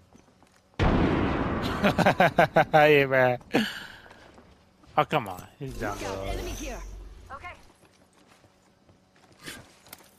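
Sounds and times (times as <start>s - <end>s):
frag grenade explosion in the video game Apex Legends: 0.8s - 2.6s
laughter: 1.6s - 3.0s
speech: 1.8s - 3.8s, 5.0s - 7.5s.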